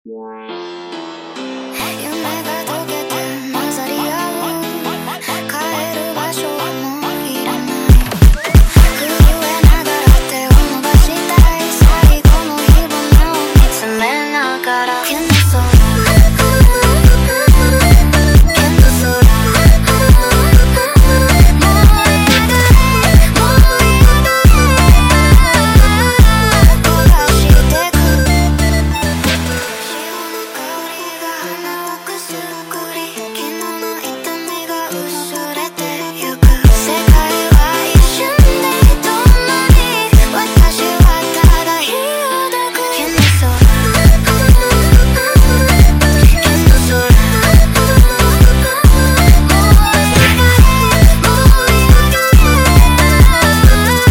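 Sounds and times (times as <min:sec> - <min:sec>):
sped up montagem music: 0:00.0 - 0:54.0.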